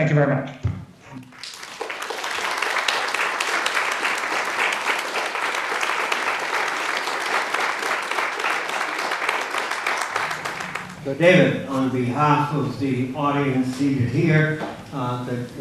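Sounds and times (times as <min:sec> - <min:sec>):
speech: 0:00.0 - 0:00.6, 0:11.0 - 0:15.5
audience applause after a talk from a large crowd: 0:01.2 - 0:11.2.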